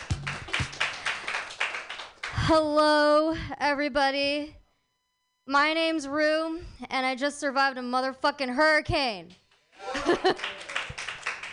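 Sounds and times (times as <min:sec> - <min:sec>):
audience clapping hands: 0:00.0 - 0:02.5, 0:09.8 - 0:11.5
speech: 0:02.5 - 0:04.6, 0:05.5 - 0:09.4, 0:10.0 - 0:10.6
laughter: 0:09.8 - 0:11.1.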